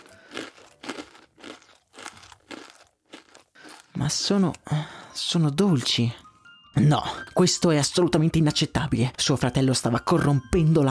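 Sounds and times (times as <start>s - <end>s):
chewing crunches of sweet cereal being tasted: 0.0s - 4.6s
speech: 4.0s - 6.2s, 6.8s - 10.9s.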